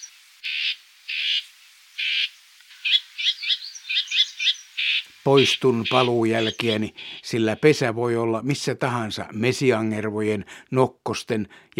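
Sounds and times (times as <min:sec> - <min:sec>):
warbler parents' alarm calls near nest: 0:00.0 - 0:07.4
speech: 0:05.2 - 0:11.7.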